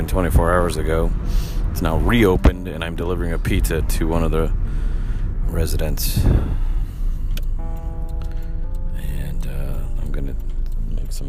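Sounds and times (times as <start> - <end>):
speech: 0.0 - 4.9, 5.5 - 6.7
car driving along Porter Valley road: 0.0 - 11.2
sustained tonal hum: 4.5 - 11.2
sharp ticks: 7.2 - 11.2.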